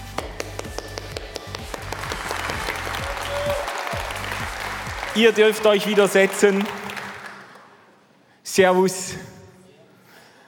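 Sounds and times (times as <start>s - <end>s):
low rhythmic thumping: 0.0s - 5.2s
crowd applause: 0.7s - 7.8s
speech: 5.2s - 6.8s, 8.6s - 9.3s.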